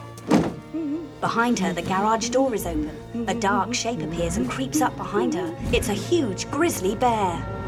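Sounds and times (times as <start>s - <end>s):
cool box being loaded into a Jeep: 0.2s - 0.7s
speech: 1.2s - 7.5s.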